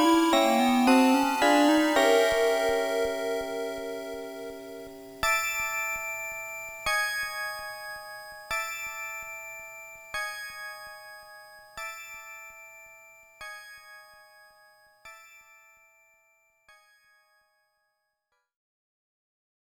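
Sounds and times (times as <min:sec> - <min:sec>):
alarm bell: 0:00.0 - 0:06.4.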